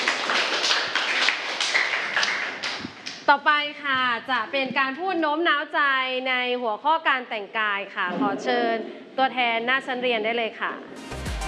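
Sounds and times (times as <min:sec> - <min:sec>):
classroom of students clapping: 0:00.0 - 0:03.3
speech: 0:03.3 - 0:11.0.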